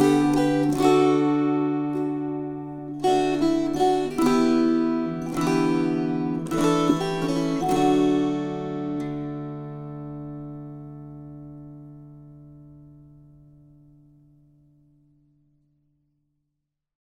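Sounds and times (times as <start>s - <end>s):
string choir: 0.0s - 9.4s.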